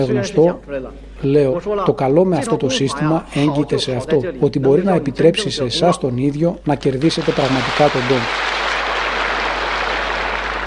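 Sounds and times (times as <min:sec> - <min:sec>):
speech: 0:00.0 - 0:08.7
audience applause: 0:07.0 - 0:10.6.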